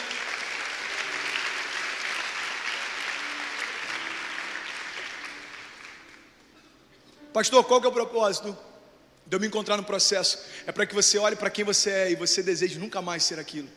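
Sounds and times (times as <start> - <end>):
audience applause: 0.0 - 6.4
speech: 7.4 - 8.7, 9.3 - 13.7.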